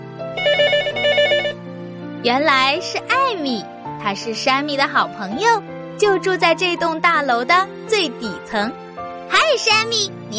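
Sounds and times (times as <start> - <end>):
telephone ringing: 0.4 - 1.6
speech: 2.2 - 8.8, 9.5 - 10.3.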